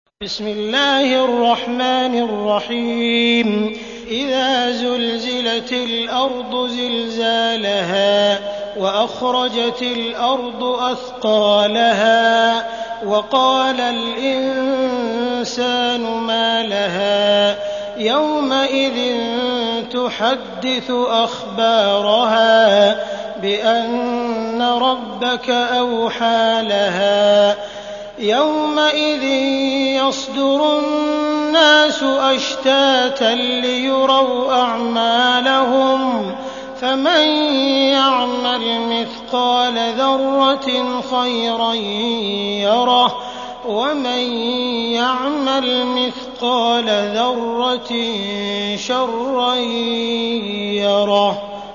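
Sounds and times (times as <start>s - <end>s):
Quran recitation: 0.2s - 51.7s.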